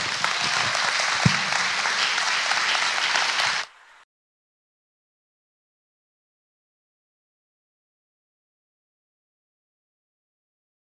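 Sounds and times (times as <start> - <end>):
church congregation applauding to welcome a pastor on Mission Sunday: 0.0 - 4.0.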